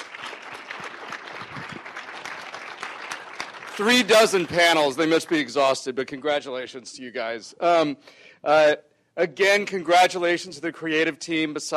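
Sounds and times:
audience applause for the festival panel organisers: 0:00.0 - 0:05.5
speech: 0:03.8 - 0:11.7.

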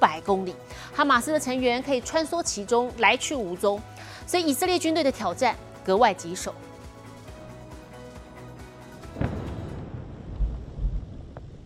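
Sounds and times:
speech: 0:00.0 - 0:06.7
artillery fire rumbling during Israeli bombing of Gaza: 0:09.2 - 0:11.6.

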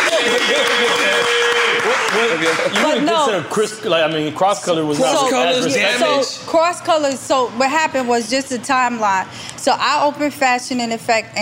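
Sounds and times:
live audience applause: 0:00.0 - 0:03.1
speech: 0:02.3 - 0:11.4.

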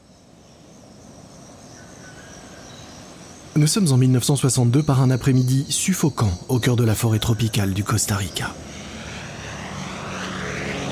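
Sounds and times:
speech: 0:03.6 - 0:08.8
American bomber plane roaring low over the jungle: 0:07.1 - 0:10.8.

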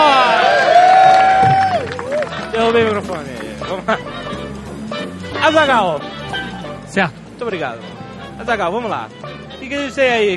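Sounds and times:
audience applause and cheering: 0:00.0 - 0:03.6
speech: 0:02.7 - 0:04.2, 0:05.4 - 0:06.2, 0:06.9 - 0:10.3.

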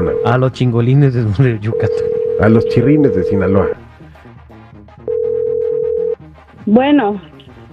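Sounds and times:
soft music: 0:00.0 - 0:07.7
speech: 0:00.1 - 0:03.8, 0:06.7 - 0:07.3
telephone dial tone: 0:01.8 - 0:03.4, 0:05.1 - 0:06.2.

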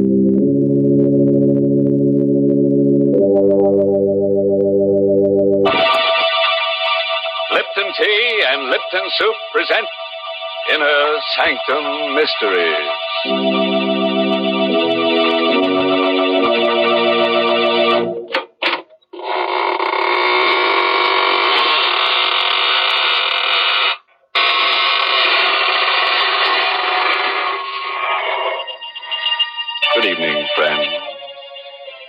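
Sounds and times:
organ-like tones: 0:00.0 - 0:18.4, 0:28.3 - 0:32.0
speech: 0:08.9 - 0:10.0, 0:10.7 - 0:13.9
door creaking open: 0:18.3 - 0:28.6.

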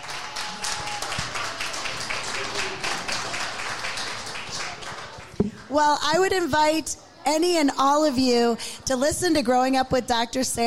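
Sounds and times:
audience applause: 0:00.0 - 0:05.7
speech: 0:05.4 - 0:10.6.

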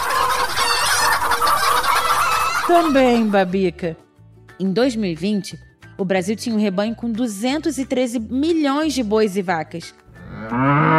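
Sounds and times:
large flock of poultry clucking: 0:00.0 - 0:02.7
laughter: 0:00.0 - 0:03.4
speech: 0:02.7 - 0:04.0, 0:04.6 - 0:10.9.

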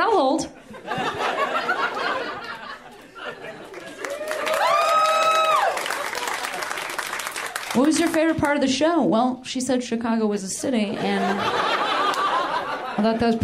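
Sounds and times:
speech: 0:00.2 - 0:01.0, 0:07.8 - 0:11.8, 0:13.0 - 0:13.4
laughter: 0:00.6 - 0:04.8, 0:10.9 - 0:13.4
audience applause: 0:03.4 - 0:08.4.

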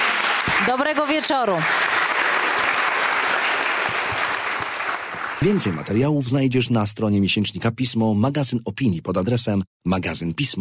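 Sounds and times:
audience applause: 0:00.0 - 0:06.2
speech: 0:00.6 - 0:02.0, 0:05.4 - 0:10.5.

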